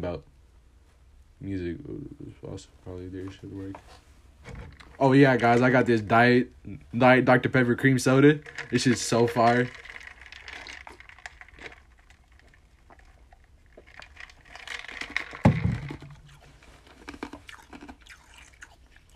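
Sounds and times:
speech: 0.0s - 0.3s, 1.4s - 9.9s
chewing ice: 8.4s - 19.1s.

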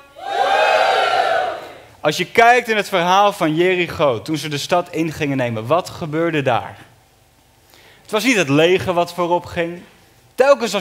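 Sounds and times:
audience cheering: 0.1s - 1.8s
speech: 2.0s - 6.9s, 8.1s - 10.7s.

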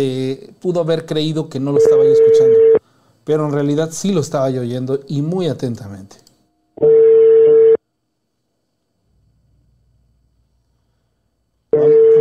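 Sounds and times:
speech: 0.0s - 6.2s
telephone ringback tone: 6.8s - 7.8s, 11.8s - 12.1s.

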